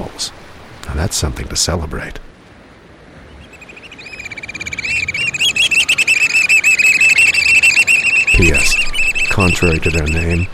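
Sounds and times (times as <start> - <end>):
rushing noise: 0.0 - 10.5
speech: 0.2 - 2.3, 9.4 - 10.5
black oystercatcher call: 3.3 - 10.5.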